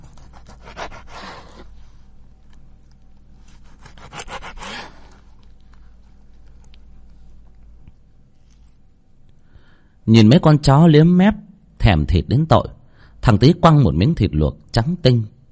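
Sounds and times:
knife scraping on a wooden cutting board: 0.0 - 1.8, 3.4 - 5.3
speech: 10.1 - 15.3.

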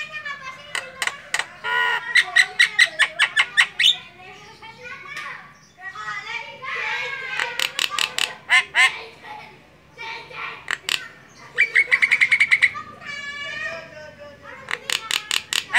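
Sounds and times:
Javan myna singing with clicks and chattering notes: 0.0 - 5.6, 6.8 - 9.0, 10.3 - 12.8, 14.5 - 15.7.

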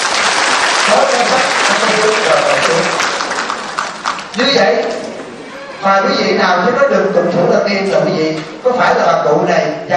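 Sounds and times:
audience applause at a religious gathering: 0.0 - 5.6
speech: 0.9 - 3.1, 4.4 - 5.0, 5.8 - 9.9.

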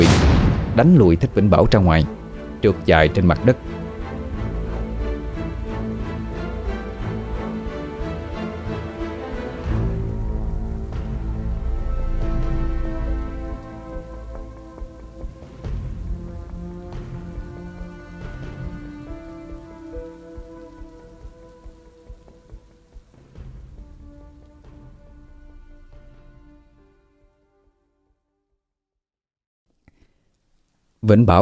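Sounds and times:
thunder: 0.0 - 2.1, 9.6 - 26.6
heavy rain: 0.0 - 26.9
speech: 0.8 - 3.8, 31.1 - 31.3.

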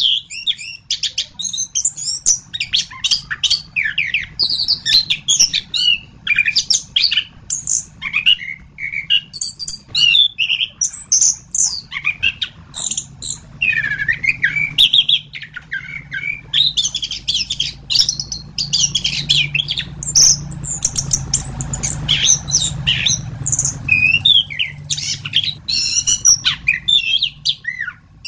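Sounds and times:
thrush singing: 1.6 - 28.2
low hum: 12.6 - 28.2.

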